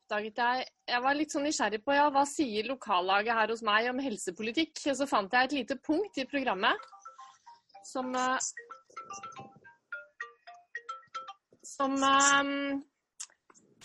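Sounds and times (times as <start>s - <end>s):
speech: 0.1s - 7.0s, 7.8s - 9.5s, 11.7s - 12.9s
private phone ringtone: 6.0s - 12.4s.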